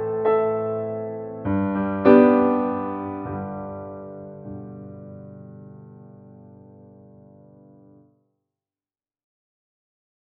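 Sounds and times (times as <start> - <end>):
piano playing I IV vi V chord progression in C: 0.0 - 8.1.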